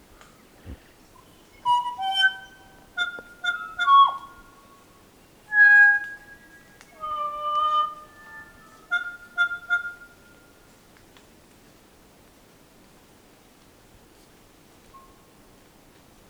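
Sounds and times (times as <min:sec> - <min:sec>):
kokako singing: 0:01.2 - 0:04.6, 0:05.4 - 0:10.4.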